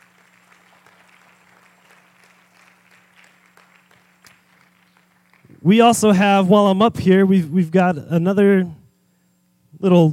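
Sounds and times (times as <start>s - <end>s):
audience applause: 0.0s - 5.5s
speech: 5.6s - 8.8s, 9.8s - 10.1s.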